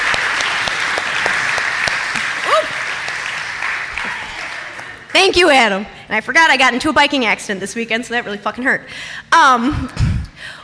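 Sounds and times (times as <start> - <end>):
audience clapping: 0.0 - 5.3
speech: 5.2 - 10.1.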